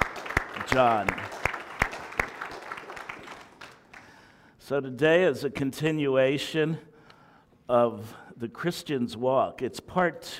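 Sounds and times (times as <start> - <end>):
audience applauding: 0.0 - 4.3
speech: 0.7 - 1.3, 4.7 - 6.9, 7.7 - 10.3.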